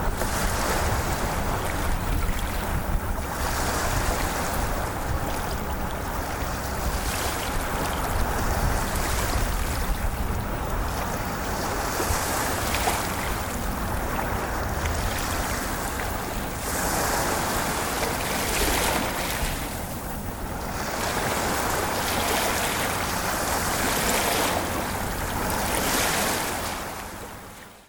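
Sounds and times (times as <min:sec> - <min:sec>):
ocean waves: 0:00.0 - 0:27.8.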